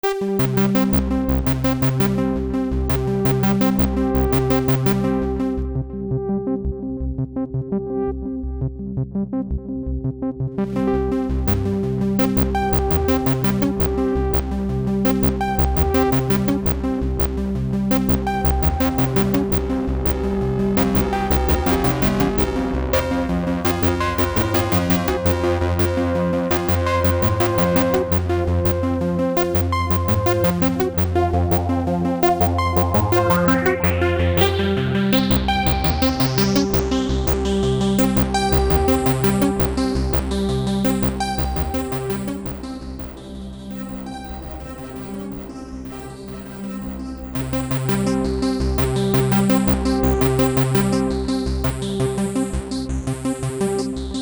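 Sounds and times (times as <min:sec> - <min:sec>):
bass: 0:00.0 - 0:54.2.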